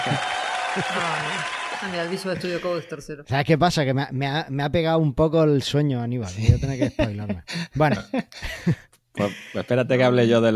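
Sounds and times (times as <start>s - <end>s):
applause: 0.0s - 2.8s
laughter: 0.0s - 3.2s, 6.3s - 9.8s
speech: 0.0s - 10.5s.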